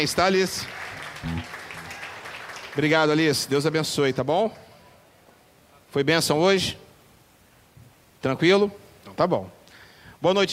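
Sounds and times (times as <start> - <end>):
speech: 0.0 - 1.6, 2.8 - 4.6, 5.9 - 6.8, 8.2 - 9.6, 10.2 - 10.5
audience applause: 0.5 - 3.2.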